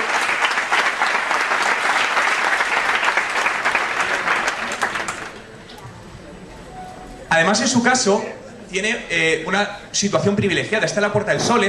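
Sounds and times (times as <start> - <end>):
audience applause: 0.0 - 5.6
speech: 7.5 - 11.6.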